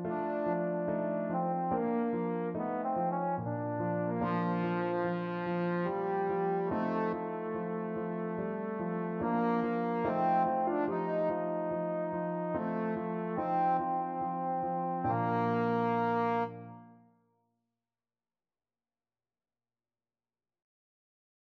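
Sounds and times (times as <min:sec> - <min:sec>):
trombone: 0:00.0 - 0:16.9.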